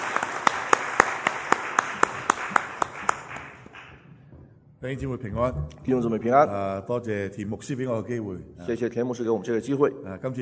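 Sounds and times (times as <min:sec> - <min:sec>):
audience applause: 0:00.0 - 0:04.0
speech: 0:04.8 - 0:10.4.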